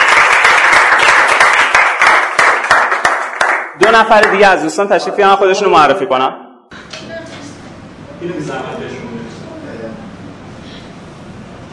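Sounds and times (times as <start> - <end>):
audience applause in a group session: 0.0 - 4.5
speech: 3.9 - 6.4, 8.2 - 9.3.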